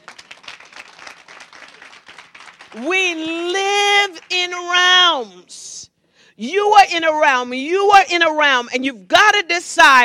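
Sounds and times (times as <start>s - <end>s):
audience clapping: 0.0s - 3.3s, 4.0s - 4.4s
speech: 2.7s - 3.6s, 4.3s - 5.6s, 6.4s - 10.0s.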